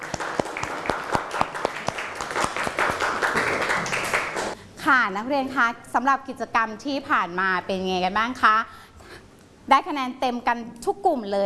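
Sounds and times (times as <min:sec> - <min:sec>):
students applauding: 0:00.0 - 0:04.6
speech: 0:04.9 - 0:08.9, 0:09.7 - 0:11.4.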